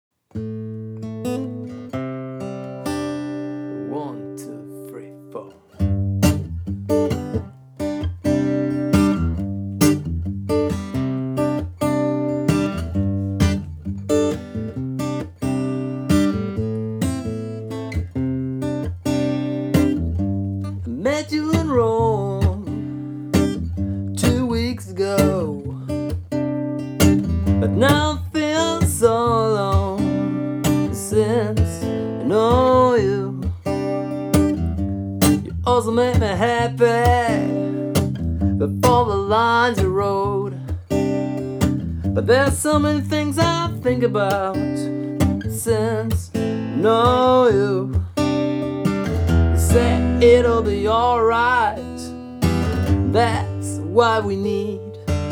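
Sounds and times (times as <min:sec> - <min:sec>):
acoustic music: 0:00.3 - 0:55.3.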